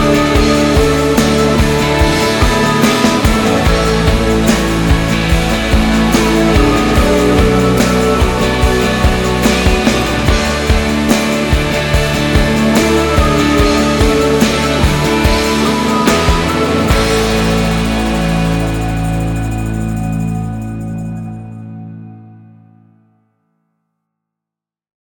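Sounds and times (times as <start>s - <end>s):
lite inspiring positive indie rock music: 0.0s - 22.4s.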